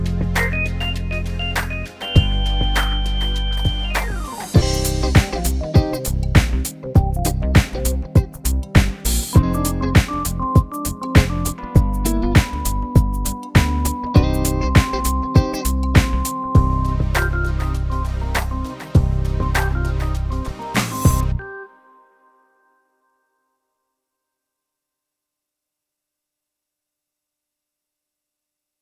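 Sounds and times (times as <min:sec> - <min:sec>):
full organ playing: 0:00.2 - 0:21.7.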